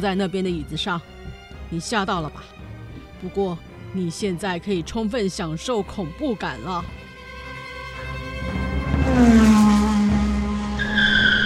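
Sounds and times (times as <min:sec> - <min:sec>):
speech: 0:00.0 - 0:01.1, 0:01.7 - 0:02.6, 0:03.2 - 0:07.0
police car speeding up and skidding: 0:07.7 - 0:11.4.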